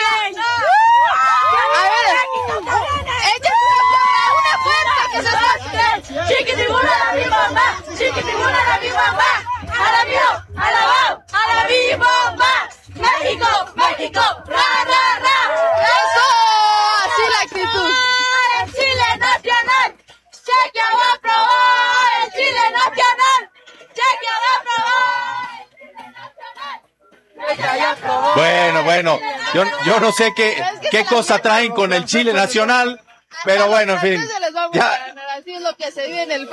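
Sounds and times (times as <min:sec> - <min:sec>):
crowd of football fans cheering in rain: 0:00.0 - 0:19.9, 0:20.5 - 0:25.7, 0:27.4 - 0:31.0
chant-like calls: 0:01.5 - 0:34.2
speech: 0:29.5 - 0:35.0, 0:35.8 - 0:36.5.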